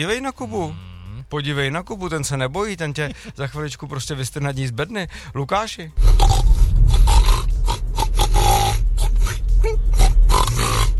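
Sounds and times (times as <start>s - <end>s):
speech: 0.0s - 6.6s
person imitating pig grunts, snorts and squeals: 0.5s - 1.3s, 6.0s - 10.9s.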